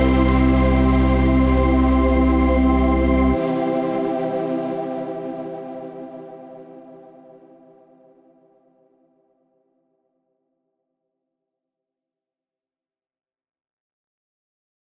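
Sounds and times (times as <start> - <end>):
MIDI music: 0.0 - 6.6.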